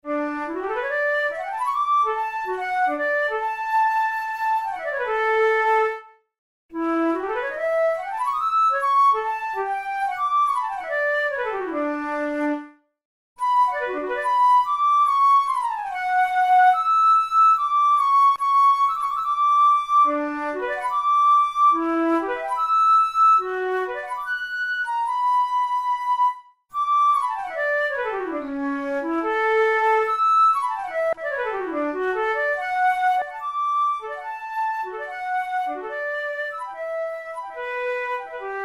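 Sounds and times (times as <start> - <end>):
studies for the Boehm flute: 0.0 - 38.6.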